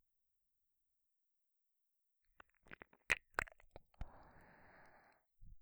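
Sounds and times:
ear licking: 2.4s - 3.8s.

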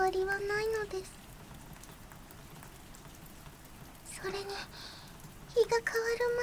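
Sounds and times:
steady rain falling: 0.0s - 6.4s
speech: 0.1s - 1.3s, 4.2s - 5.0s, 5.6s - 6.4s.

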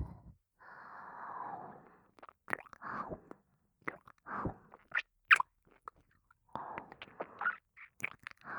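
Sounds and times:
ear licking: 2.2s - 2.9s, 3.8s - 8.5s.

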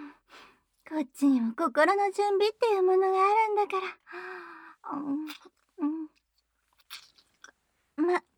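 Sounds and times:
speech: 1.0s - 6.0s, 8.0s - 8.3s
chewing steak: 6.8s - 7.5s.

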